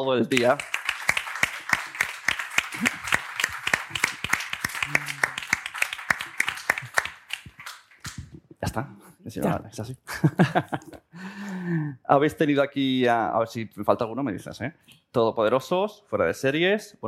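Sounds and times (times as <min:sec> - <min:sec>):
speech: 0:00.0 - 0:00.7, 0:08.8 - 0:11.0, 0:11.6 - 0:17.0
crowd applause: 0:00.3 - 0:08.2
laughter: 0:02.7 - 0:05.4, 0:10.1 - 0:11.0.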